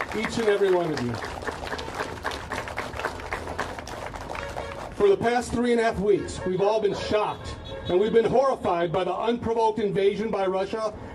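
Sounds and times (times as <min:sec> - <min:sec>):
round of applause: 0:00.0 - 0:05.2
speech: 0:00.1 - 0:01.4, 0:05.0 - 0:11.1.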